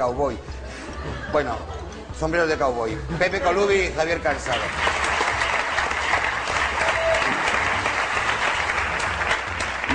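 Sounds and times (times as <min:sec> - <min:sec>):
speech: 0:00.0 - 0:05.0
studio audience applause: 0:04.3 - 0:09.9.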